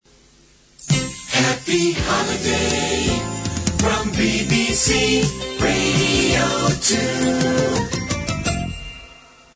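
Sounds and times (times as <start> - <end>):
jingle: 0.8 - 9.5.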